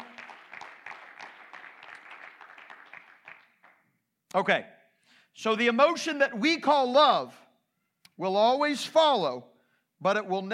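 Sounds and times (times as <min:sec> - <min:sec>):
audience clapping hands: 0:00.0 - 0:04.0
speech: 0:04.4 - 0:04.8, 0:05.4 - 0:07.4, 0:08.2 - 0:10.5.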